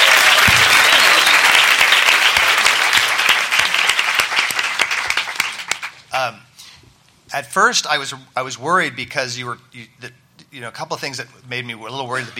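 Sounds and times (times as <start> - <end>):
audience applause: 0.0 - 6.0
speech: 7.6 - 12.3.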